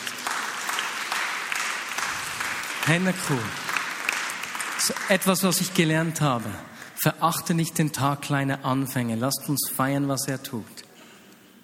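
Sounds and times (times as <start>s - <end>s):
audience applause: 0.0s - 7.0s
speech: 2.9s - 3.6s, 4.8s - 10.8s.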